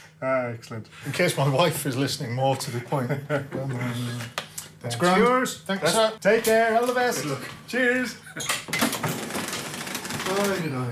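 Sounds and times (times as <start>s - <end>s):
speech: 0.2s - 8.8s, 10.3s - 10.8s
old shop till clattering: 8.8s - 10.6s.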